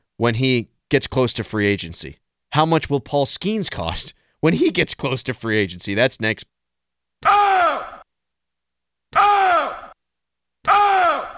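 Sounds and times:
speech: 0.2 - 6.5
mummy screaming sound effect: 7.2 - 8.0, 9.1 - 10.0, 10.6 - 11.3.

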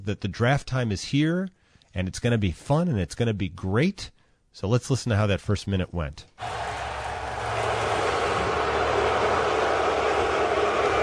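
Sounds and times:
speech: 0.1 - 6.6
crowd booing: 6.4 - 11.0.

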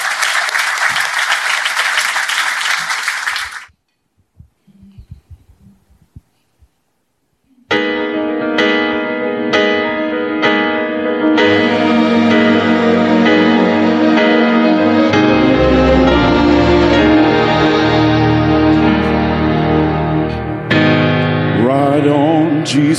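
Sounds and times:
audience applause: 0.0 - 3.7
music: 7.7 - 22.9.

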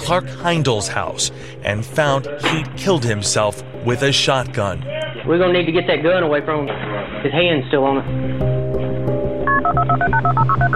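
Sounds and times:
speech: 0.1 - 8.5
touch-tone telephone keypad dialing 911: 9.5 - 10.7.

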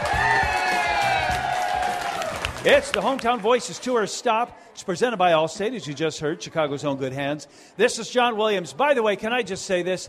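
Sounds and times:
people yelling: 0.0 - 2.4
crowd cheering and whooping: 0.0 - 4.5
speech: 2.6 - 10.0.

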